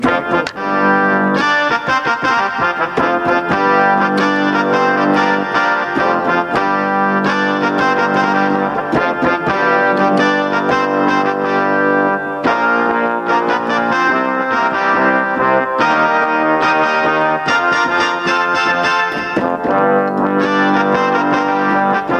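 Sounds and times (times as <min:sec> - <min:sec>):
horns: 0:00.0 - 0:22.1.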